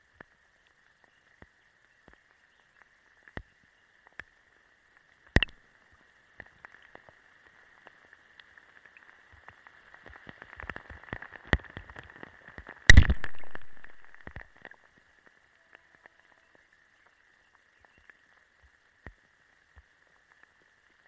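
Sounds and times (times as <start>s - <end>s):
rainstorm falling into a forest puddle: 0.1s - 21.0s.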